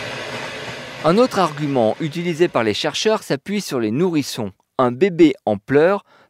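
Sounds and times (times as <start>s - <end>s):
FM radio band sweep on old radios: 0.9s - 2.9s
speech: 1.1s - 6.2s.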